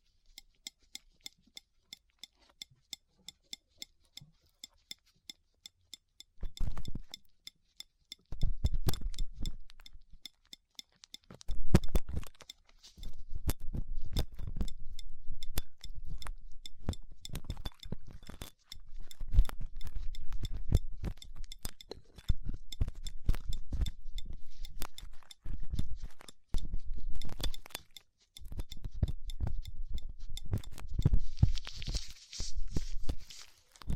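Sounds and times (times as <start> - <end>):
light regular ticks: 0.0 - 32.2
ear cleaning scratchy rustling with dental pick and cotton swabs: 31.2 - 33.8.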